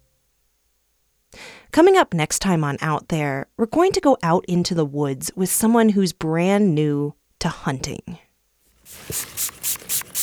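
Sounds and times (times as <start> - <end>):
speech: 1.8 - 8.2, 8.9 - 9.5
fox urine sprayed onto a wick: 8.7 - 10.2.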